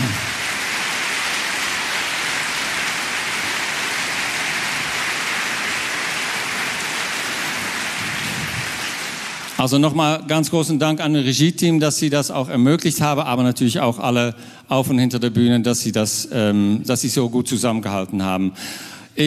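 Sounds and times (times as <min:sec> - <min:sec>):
audience applause: 0:00.0 - 0:09.9
speech: 0:09.6 - 0:19.2.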